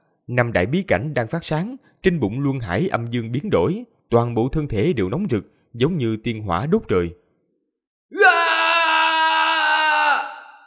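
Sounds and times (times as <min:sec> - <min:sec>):
speech: 0:00.3 - 0:07.2
long scream: 0:08.1 - 0:10.6.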